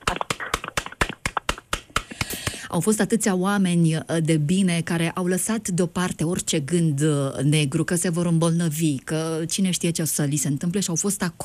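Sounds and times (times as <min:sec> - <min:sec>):
audience clapping rhythmically for volunteers: 0:00.0 - 0:02.6
speech: 0:02.7 - 0:11.4.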